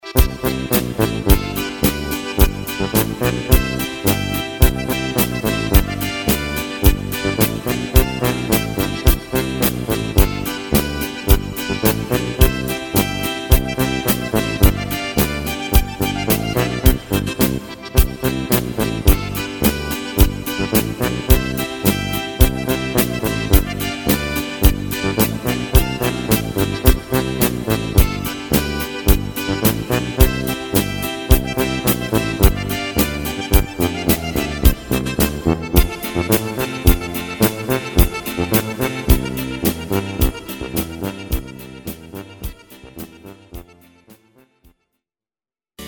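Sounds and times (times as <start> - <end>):
Bavarian boarischer folk dance music: 0.0 - 43.9.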